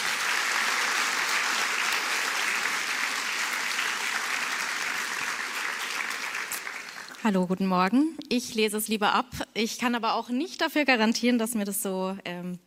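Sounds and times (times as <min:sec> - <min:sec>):
audience applause: 0:00.0 - 0:07.2
speech: 0:07.2 - 0:12.6.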